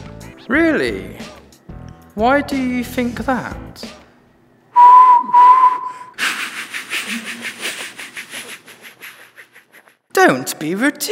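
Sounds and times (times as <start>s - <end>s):
speech: 0.5s - 1.3s, 2.2s - 3.9s, 10.2s - 11.1s
person imitating steam train whistle: 4.8s - 6.3s
laughter: 6.2s - 9.9s.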